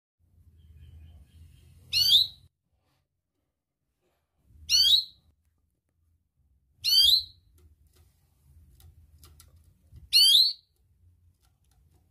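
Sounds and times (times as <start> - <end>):
Atlantic canary song trills: 0.3 - 2.5, 4.6 - 5.3, 6.8 - 7.6, 10.0 - 10.9.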